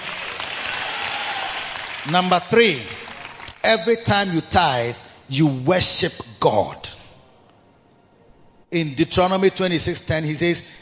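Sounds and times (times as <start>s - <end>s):
audience clapping: 0.0s - 4.0s
speech: 2.0s - 3.0s, 3.6s - 6.8s, 8.7s - 10.8s.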